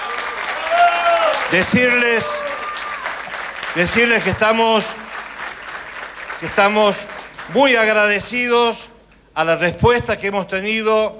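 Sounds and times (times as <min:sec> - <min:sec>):
audience applause: 0:00.0 - 0:08.1
speech: 0:01.5 - 0:02.6, 0:03.7 - 0:05.0, 0:06.4 - 0:11.1.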